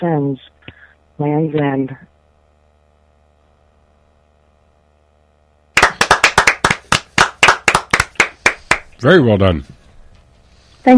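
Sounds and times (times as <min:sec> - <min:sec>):
speech: 0:00.0 - 0:00.6, 0:01.2 - 0:02.1, 0:09.0 - 0:09.8
clapping after a sung performance: 0:05.8 - 0:08.9.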